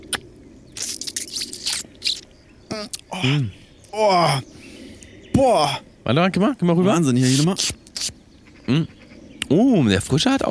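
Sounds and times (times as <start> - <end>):
wet slurping as blood is sucked from the neck of a cooked bird: 0.0 - 3.1, 7.2 - 8.1
speech: 2.7 - 4.5, 5.4 - 7.7, 8.7 - 10.4.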